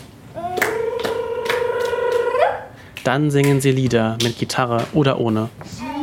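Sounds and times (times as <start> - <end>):
performers clapping hands: 0.0 - 5.0
speech: 3.0 - 5.9.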